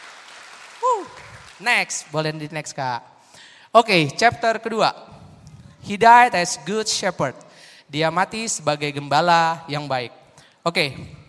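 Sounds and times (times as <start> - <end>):
audience applause: 0.0 - 1.6
speech: 1.6 - 3.1, 3.7 - 5.2, 5.8 - 11.2.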